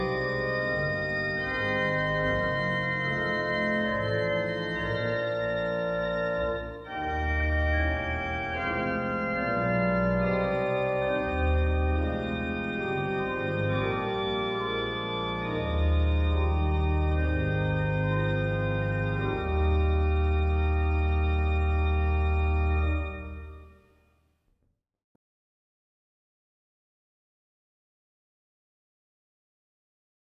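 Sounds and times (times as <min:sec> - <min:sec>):
chorale prelude music: 0:00.0 - 0:23.9.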